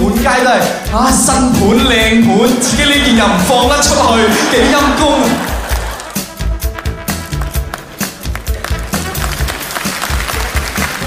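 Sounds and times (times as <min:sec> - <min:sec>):
speech: 0:00.4 - 0:05.6
low rumble: 0:00.9 - 0:05.6
laughter: 0:02.6 - 0:06.4
scattered half-hearted clapping from a studio audience: 0:05.6 - 0:11.0.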